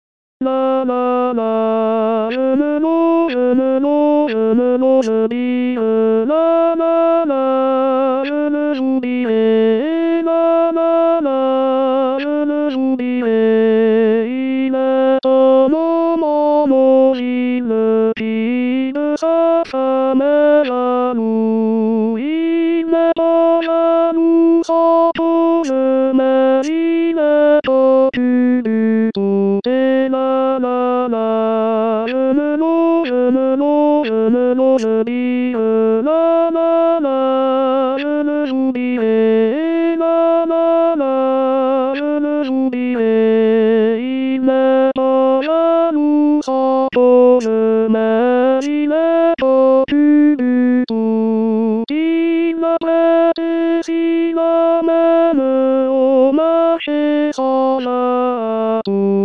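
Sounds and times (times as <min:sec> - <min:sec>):
tenor singing: 0:00.4 - 0:59.2.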